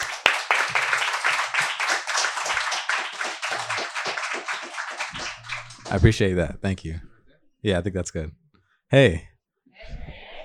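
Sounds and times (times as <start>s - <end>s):
audience applause: 0.0s - 6.3s
speech: 5.9s - 9.3s.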